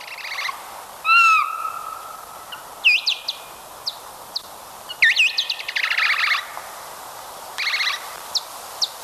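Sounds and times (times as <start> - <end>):
bat social calls slowed down tenfold: 0.0 - 6.7, 7.6 - 9.0
soft hiss: 0.0 - 9.0.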